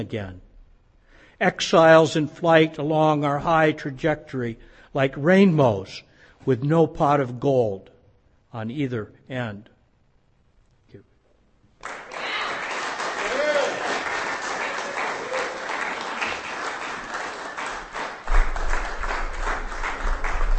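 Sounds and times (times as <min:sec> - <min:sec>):
speech: 0:00.0 - 0:00.5, 0:01.4 - 0:07.9, 0:08.5 - 0:09.7
audience applause after a poetry reading: 0:11.8 - 0:20.5.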